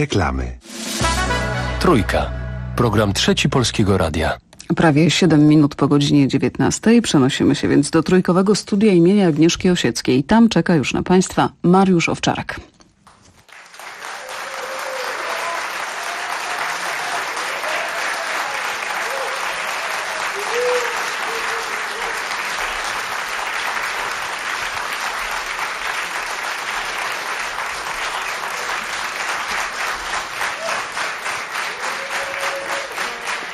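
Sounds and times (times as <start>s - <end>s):
speech: 0.0s - 0.8s, 1.8s - 12.7s
studio audience applauding artists in a radio station's concert studio: 13.4s - 33.5s.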